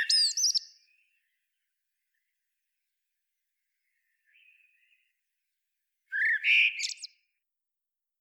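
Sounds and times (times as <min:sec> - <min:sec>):
Turdus merula common blackbird singing warbling phrases: 0:00.0 - 0:00.9, 0:06.1 - 0:07.2.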